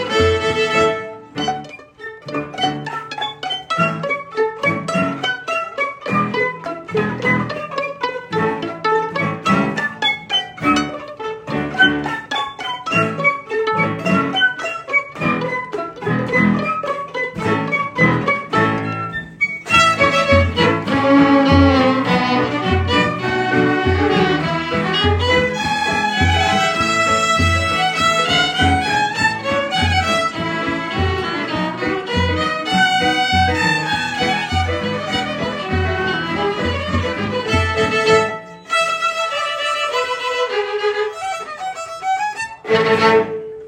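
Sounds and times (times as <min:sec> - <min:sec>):
orchestra playing polka: 0:00.0 - 0:43.6.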